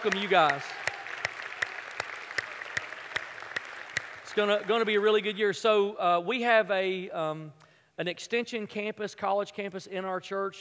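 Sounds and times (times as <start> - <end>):
speech: 0.0 - 0.8, 4.4 - 10.5
audience applause at a church gathering: 0.0 - 5.3.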